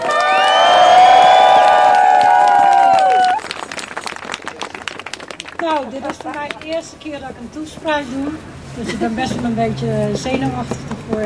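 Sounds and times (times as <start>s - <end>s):
audience applause: 0.0s - 6.6s
speech: 5.8s - 11.2s.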